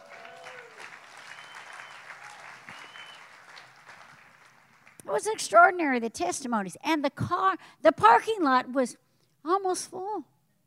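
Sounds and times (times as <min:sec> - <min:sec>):
audience clapping hands: 0:00.0 - 0:05.3
speech: 0:05.1 - 0:10.3.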